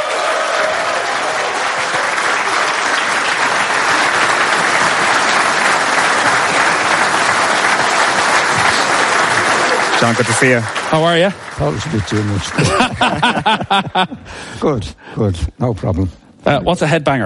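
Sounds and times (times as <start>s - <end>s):
audience applause at a tribute event for Irish football: 0.0s - 14.1s
speech: 10.0s - 17.2s
laughter: 12.1s - 14.4s.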